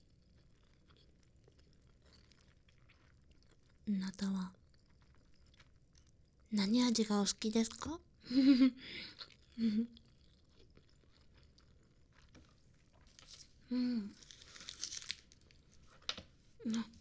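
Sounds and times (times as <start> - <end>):
chewing a nori-wrapped rice ball: 0.0 - 8.2, 8.8 - 16.9
speech: 3.9 - 4.6, 6.5 - 10.0, 13.7 - 14.2, 16.6 - 16.9
crinkly crackling: 10.8 - 16.9.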